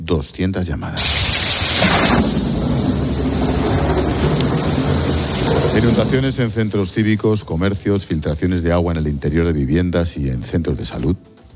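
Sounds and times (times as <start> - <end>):
speech: 0.1 - 2.4, 5.8 - 11.4
steady heavy rain: 1.0 - 7.1
deep sustained rumbling thunder: 1.0 - 7.8.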